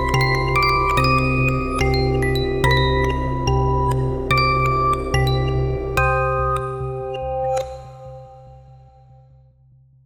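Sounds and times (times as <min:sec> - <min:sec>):
creepy music box melody: 0:00.0 - 0:07.7.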